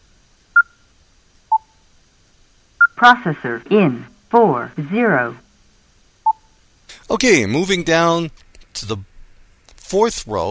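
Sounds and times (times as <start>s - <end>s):
device beep when toggling a button on and off: 0.6s - 0.8s, 2.8s - 3.1s
speech: 3.0s - 5.4s, 7.1s - 9.1s, 9.9s - 10.4s.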